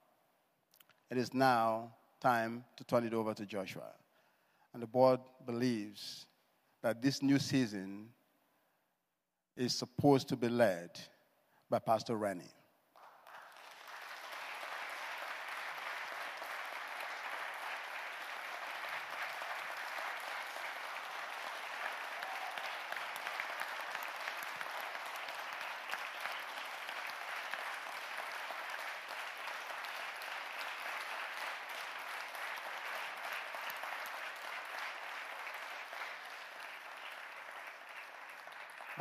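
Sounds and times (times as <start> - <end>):
speech: 1.1 - 4.0, 4.7 - 8.2, 9.6 - 11.1, 11.7 - 12.6
audience cheering: 13.8 - 38.9.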